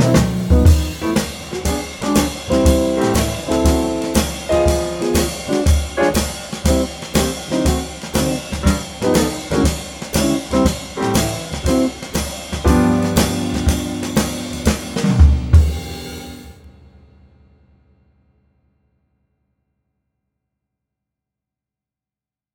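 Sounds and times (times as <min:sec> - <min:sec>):
jazz blues swing music in G: 0:00.0 - 0:16.4.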